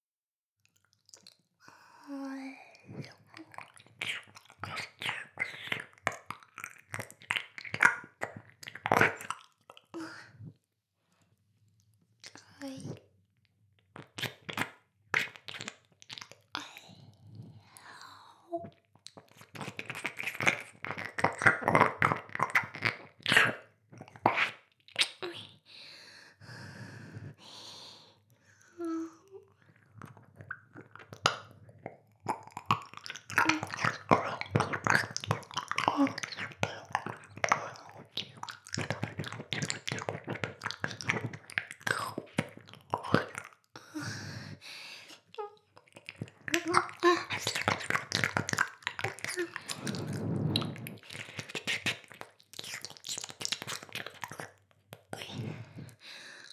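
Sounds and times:
ear licking: 2.9 - 10.0, 13.9 - 16.7, 18.6 - 25.6, 29.0 - 56.5.

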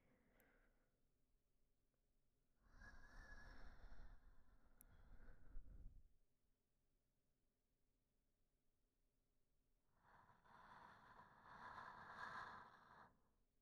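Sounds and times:
person breathing in sleep: 2.7 - 5.9, 9.9 - 13.4.

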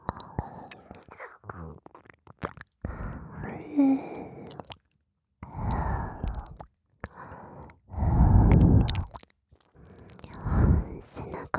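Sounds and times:
ear licking: 0.0 - 3.0, 4.3 - 7.2, 8.4 - 11.4.

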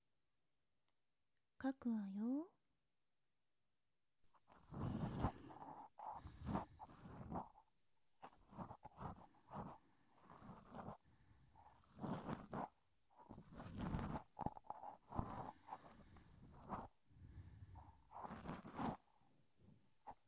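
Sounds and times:
speech: 1.6 - 2.6
ear cleaning scratching and rubbing inside the ear: 4.5 - 11.0, 11.6 - 16.9, 17.8 - 19.1.

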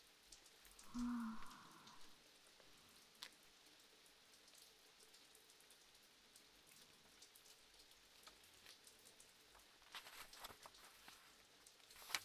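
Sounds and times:
rain: 0.0 - 12.2
person reading a book: 0.8 - 2.1, 9.7 - 12.2.

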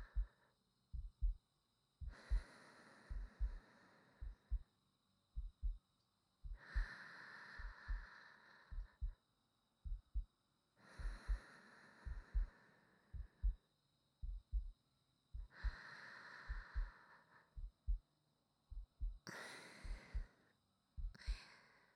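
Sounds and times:
new wife's heartbeat: 0.0 - 1.4, 2.0 - 2.5, 3.1 - 3.6, 4.2 - 4.7, 5.4 - 5.8, 6.4 - 7.0, 7.6 - 8.1, 8.7 - 9.2, 9.8 - 10.3, 10.9 - 13.6, 14.2 - 15.8, 16.5 - 18.1, 18.7 - 20.3, 21.0 - 21.5
sleeping breathing: 2.1 - 4.6, 6.5 - 9.1, 10.8 - 13.5, 15.4 - 17.6, 19.2 - 20.5.

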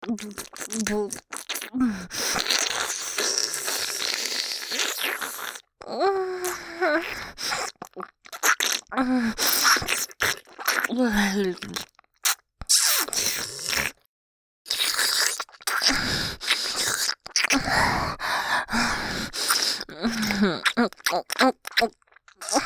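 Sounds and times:
wet mouth sounds in the right ear: 0.0 - 14.1, 14.7 - 22.6.

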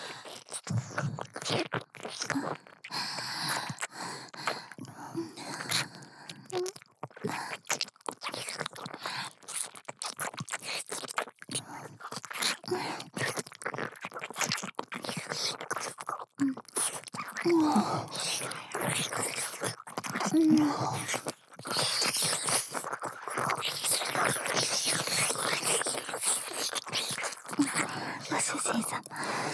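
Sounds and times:
ear licking: 0.4 - 29.5
sex sounds: 6.4 - 6.8, 17.4 - 18.2, 20.2 - 21.3.

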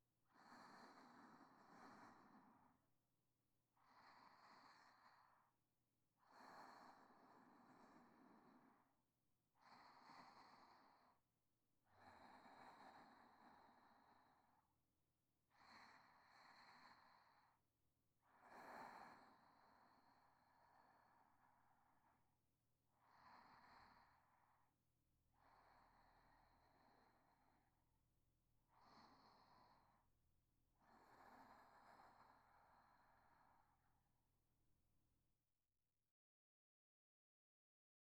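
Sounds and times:
sleeping breath: 0.3 - 2.9, 3.7 - 5.6, 6.2 - 11.2, 11.8 - 14.7, 15.5 - 17.6, 18.2 - 22.2, 22.9 - 24.7, 25.3 - 27.8, 28.6 - 30.1, 30.8 - 34.0.

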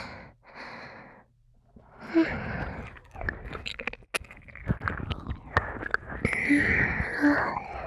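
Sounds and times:
ear licking: 1.7 - 7.8.

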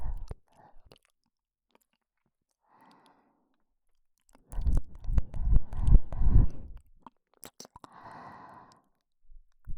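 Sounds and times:
ear licking in the right ear: 4.2 - 7.9.

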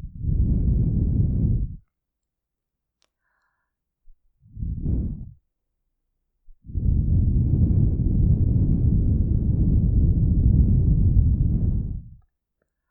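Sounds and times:
blowing through a straw into ears: 0.0 - 1.8, 4.5 - 5.4, 6.7 - 12.2.

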